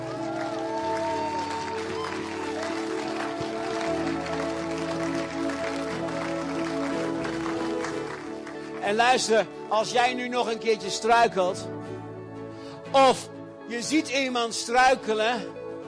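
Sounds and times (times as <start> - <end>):
audience applause: 0.0 - 8.9
speech: 8.9 - 11.8, 12.9 - 15.6.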